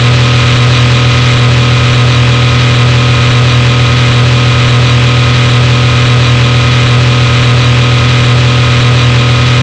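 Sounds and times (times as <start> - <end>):
engine: 0.0 - 9.6.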